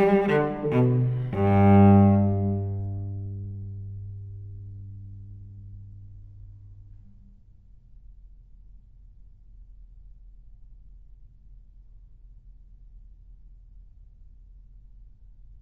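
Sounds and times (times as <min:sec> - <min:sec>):
solo cello gigue in G major: 0:00.0 - 0:07.1.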